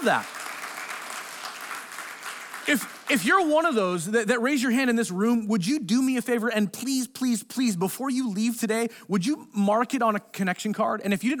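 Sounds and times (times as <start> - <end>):
speech: 0.0 - 0.4, 2.7 - 11.3
audience clapping: 0.0 - 3.8.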